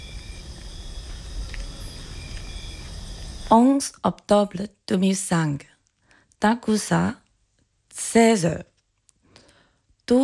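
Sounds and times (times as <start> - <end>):
cane toads calling: 0.0 - 3.6
crickets chirping: 0.0 - 4.0
speech: 3.5 - 5.7, 6.4 - 7.2, 8.0 - 8.7, 10.1 - 10.2.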